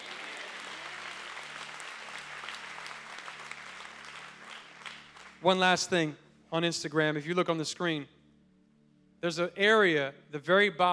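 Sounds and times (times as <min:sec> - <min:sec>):
audience clapping: 0:00.0 - 0:05.7
low sustained musical tone: 0:04.7 - 0:10.9
speech: 0:05.4 - 0:08.2, 0:09.2 - 0:10.9.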